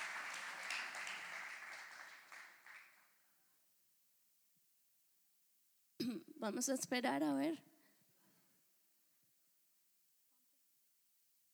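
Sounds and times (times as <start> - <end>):
applause during a church service: 0.0 - 3.4
speech: 6.0 - 7.7.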